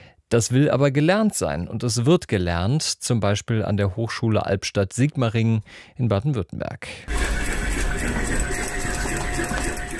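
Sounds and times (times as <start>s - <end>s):
speech: 0.3s - 8.4s
sewing machines whirring in a university textile garment lab: 7.1s - 9.9s.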